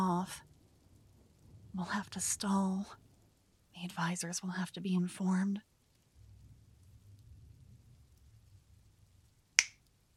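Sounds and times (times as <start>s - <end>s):
speech: 0.2s - 0.5s, 1.8s - 3.0s, 3.8s - 5.7s
finger snap: 9.6s - 9.8s.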